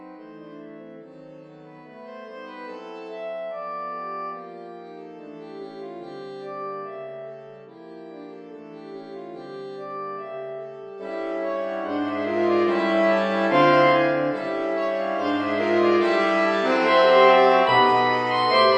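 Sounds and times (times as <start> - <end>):
saxophone ensemble playing: 11.0 - 18.7.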